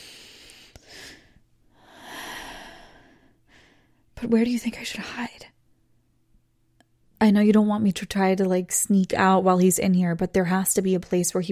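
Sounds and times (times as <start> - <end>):
person taking slow deep calming breaths: 0.0 - 4.1
speech: 4.2 - 5.6, 7.2 - 11.5.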